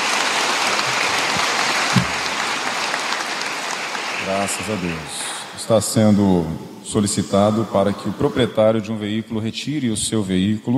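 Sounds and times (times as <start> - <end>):
audience applause: 0.0 - 5.9
low thumps: 1.2 - 2.5
speech: 4.3 - 10.7.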